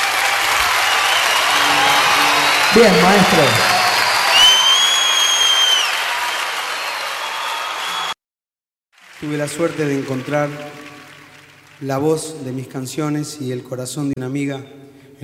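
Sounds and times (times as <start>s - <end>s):
audience applause: 0.0s - 8.2s, 9.0s - 11.8s
speech: 2.8s - 3.7s, 9.2s - 10.8s, 11.8s - 15.2s.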